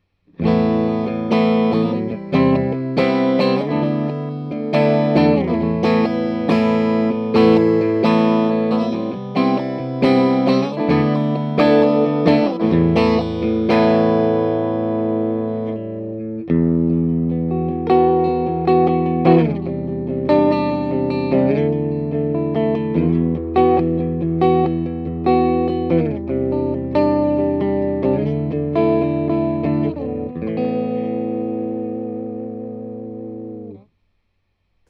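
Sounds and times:
Vox MV50 clean guitar amp tone with flat EQ: 0.0 - 33.9.

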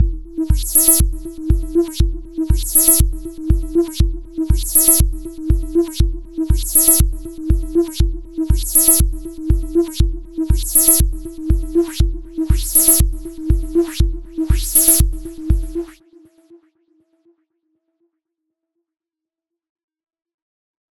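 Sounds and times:
bass drum through Dreadbox Drips V2 delay: 0.0 - 15.9.

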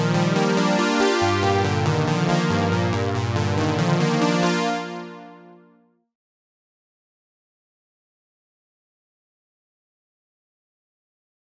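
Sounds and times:
SDD320 chorus effect: 0.0 - 5.3.

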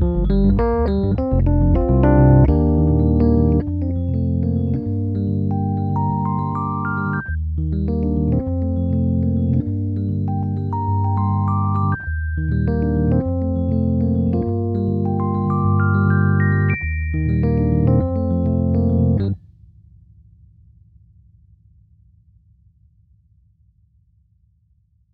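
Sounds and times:
Rhodes Mark I electric piano: 0.0 - 19.4.

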